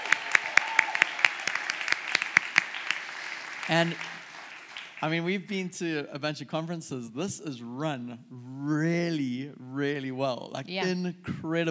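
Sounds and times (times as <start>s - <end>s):
audience applauding the sound team at a church conference: 0.0s - 5.4s
speech: 3.7s - 4.1s, 5.0s - 11.6s.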